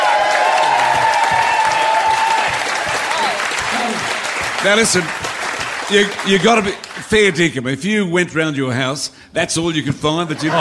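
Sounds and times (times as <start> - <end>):
cheers and whistles: 0.0 - 3.4
crowd applauding: 0.0 - 7.4
speech: 4.6 - 5.3, 5.9 - 10.5.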